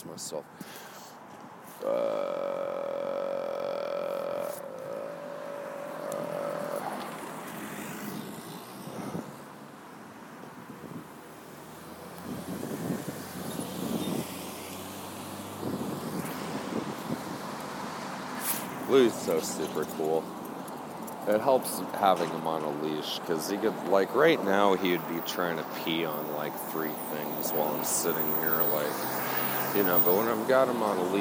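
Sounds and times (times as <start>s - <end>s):
low traffic rumble on a street corner: 0.0s - 31.1s
speech: 0.1s - 0.9s, 1.8s - 2.6s, 18.9s - 20.4s, 21.3s - 31.1s
broadband roaring: 1.8s - 9.2s
wind buffeting the microphone on a street corner: 12.2s - 14.4s, 15.5s - 17.5s.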